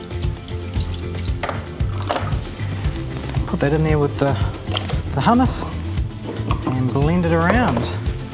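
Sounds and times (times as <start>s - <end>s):
liquid draining from canned beetroot: 0.0s - 5.3s
speech: 3.6s - 5.8s, 6.8s - 8.0s.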